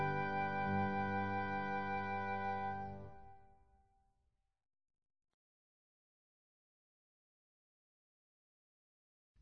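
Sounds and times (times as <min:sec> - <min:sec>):
instrumental music: 0:00.0 - 0:03.6.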